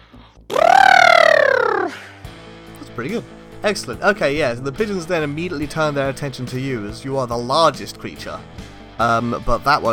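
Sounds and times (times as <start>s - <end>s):
person imitating an elephant trumpeting: 0.5s - 2.0s
speech: 3.0s - 9.9s.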